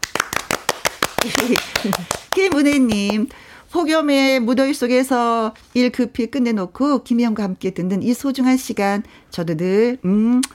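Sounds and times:
clapping: 0.0s - 3.2s
speech: 1.2s - 10.5s.

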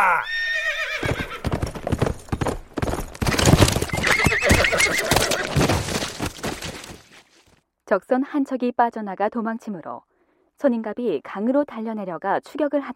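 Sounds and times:
horse neighing: 0.0s - 1.5s, 3.8s - 5.6s
horse hooves galloping: 0.9s - 7.5s
speech: 7.9s - 12.9s.

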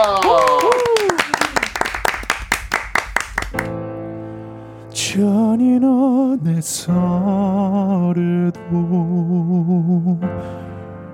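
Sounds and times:
whoops and cheers: 0.0s - 1.6s
audience applause: 0.0s - 3.7s
speech: 5.2s - 9.8s.

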